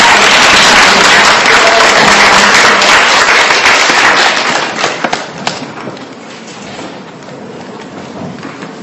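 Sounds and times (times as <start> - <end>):
audience applause: 0.0 - 5.5.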